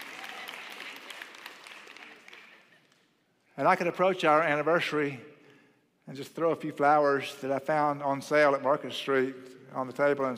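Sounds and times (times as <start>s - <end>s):
audience clapping: 0.0s - 3.1s
speech: 3.6s - 5.3s, 6.1s - 10.3s.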